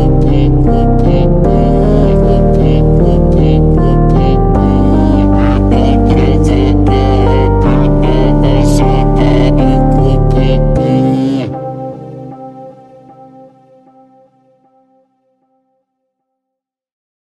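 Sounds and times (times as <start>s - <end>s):
slowed funk music: 0.0s - 13.5s.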